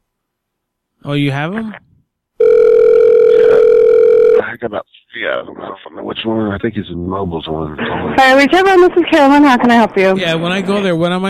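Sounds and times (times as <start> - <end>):
speech: 1.0 - 1.9, 4.6 - 11.2
electronic telephone tone during a phone call: 2.4 - 4.4.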